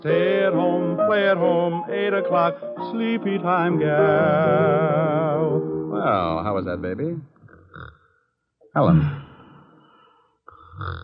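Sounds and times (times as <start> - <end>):
speech: 0.0 - 7.3, 8.8 - 9.2
woman snoring: 10.5 - 11.0.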